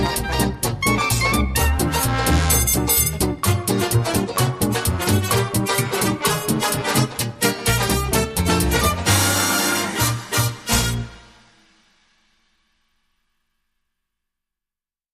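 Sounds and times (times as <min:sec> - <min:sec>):
Charleston dance remix without drums: 0:00.0 - 0:11.5.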